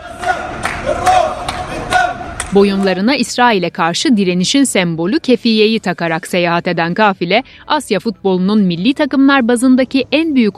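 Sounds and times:
crowd cheering and chanting: 0:00.0 - 0:03.0
rhythmic clapping: 0:00.0 - 0:03.1
speech: 0:02.5 - 0:10.5.

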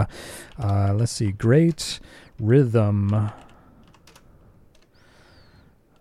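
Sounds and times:
speech: 0:00.0 - 0:03.4
typing a comment on a computer keyboard: 0:00.4 - 0:05.0.

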